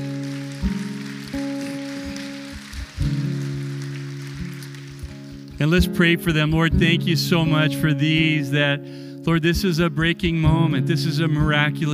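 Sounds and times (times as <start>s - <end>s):
audience applause: 0.0s - 5.8s
speech: 5.6s - 11.9s.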